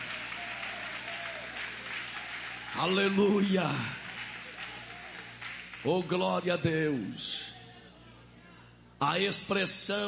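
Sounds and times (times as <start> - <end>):
church congregation applauding during worship: 0.0 - 6.8
speech: 2.8 - 4.0, 5.8 - 7.6, 9.0 - 10.0.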